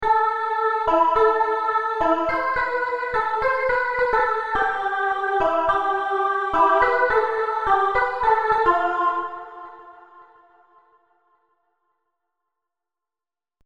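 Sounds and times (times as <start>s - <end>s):
Serum synthesizer sounds: 0.8s - 9.8s.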